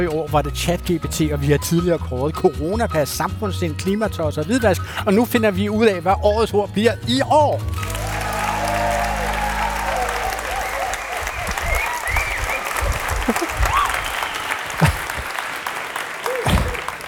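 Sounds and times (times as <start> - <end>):
speech: 0.0 - 7.9
studio audience applauding: 7.6 - 17.0
audience whoops and cheers: 7.7 - 15.0, 16.2 - 16.9.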